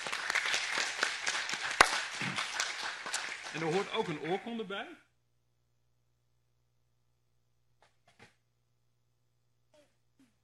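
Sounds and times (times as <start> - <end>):
audience applause: 0.0 - 4.5
speech: 3.6 - 5.1.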